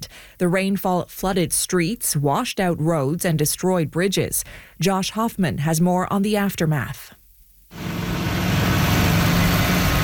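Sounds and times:
speech: 0:00.4 - 0:07.9
bulldozers repairing damaged roadways: 0:07.8 - 0:10.0.

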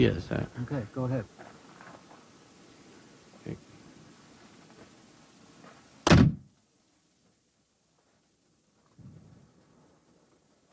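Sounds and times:
speech: 0:00.0 - 0:01.4, 0:03.4 - 0:03.6
gunshot echoing off the Southside Hills: 0:06.0 - 0:06.5.

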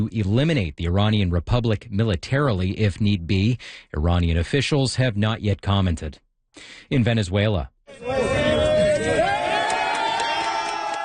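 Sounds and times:
speech: 0:00.0 - 0:08.2
crowd cheering and shouting as a rescue team from Spain pulls a survivor from rubble: 0:07.9 - 0:11.0.

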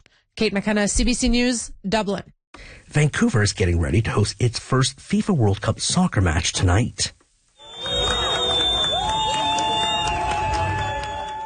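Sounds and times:
speech: 0:00.4 - 0:07.2
high whistle or horn: 0:07.6 - 0:11.4
soccer fans cheering as team bus arrives: 0:07.6 - 0:11.4.

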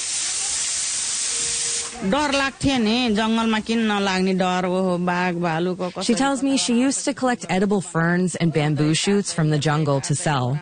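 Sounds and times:
pressure cooker hissing steam: 0:00.0 - 0:02.4
speech: 0:02.0 - 0:10.5.

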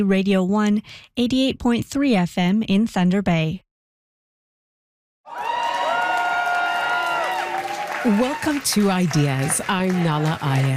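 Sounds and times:
speech: 0:00.0 - 0:03.6, 0:08.0 - 0:10.7
people shouting and whooping: 0:05.3 - 0:08.6
party crowd cheering at election results: 0:05.3 - 0:10.7.

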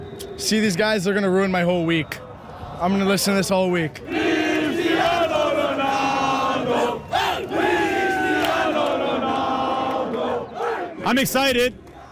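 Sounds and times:
football fans cheering for Portugal: 0:00.0 - 0:12.0
speech: 0:00.4 - 0:04.2, 0:11.1 - 0:11.8.

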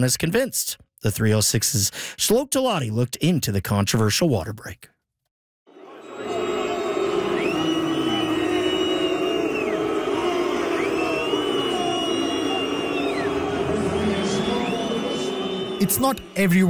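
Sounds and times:
speech: 0:00.0 - 0:04.9, 0:15.8 - 0:16.6
World Cup stadium crowd booing hydration breaks: 0:05.7 - 0:16.6.

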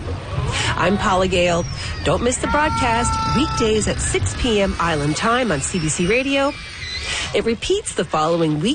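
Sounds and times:
humpback whale calls: 0:00.2 - 0:07.4
orca calls: 0:00.6 - 0:07.0
speech: 0:00.8 - 0:08.7.

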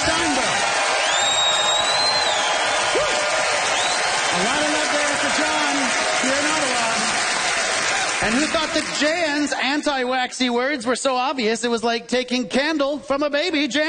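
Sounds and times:
audience applause: 0:00.0 - 0:09.9
speech: 0:08.3 - 0:13.8.

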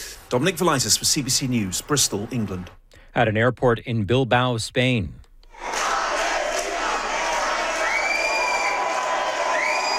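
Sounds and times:
speech: 0:00.3 - 0:05.2
activists chanting and cheering at airport: 0:05.5 - 0:09.9
shrill whoops and whistles: 0:07.7 - 0:09.9.

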